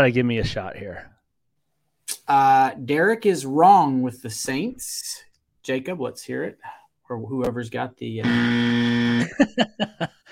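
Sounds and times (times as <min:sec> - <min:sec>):
speech: 0:00.0 - 0:01.1, 0:02.1 - 0:10.2
game show wrong-answer buzzer: 0:08.2 - 0:09.4
laughter: 0:09.2 - 0:10.2.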